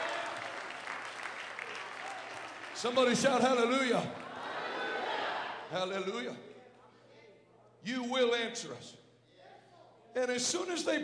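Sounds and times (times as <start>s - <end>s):
congregation clapping hands during a church service: 0.0s - 4.6s
speech: 2.8s - 4.3s, 5.7s - 6.5s, 7.8s - 9.0s, 10.2s - 11.0s.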